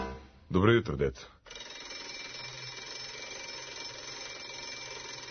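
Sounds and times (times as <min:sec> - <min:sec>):
speech: 0:00.6 - 0:01.6
electric school bell ringing: 0:01.5 - 0:05.2.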